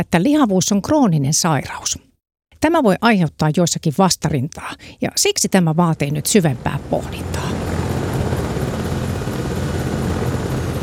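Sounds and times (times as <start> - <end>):
speech: 0.0 - 7.8
medical helicopter arriving to land on the rooftop of a tall building: 6.0 - 10.8.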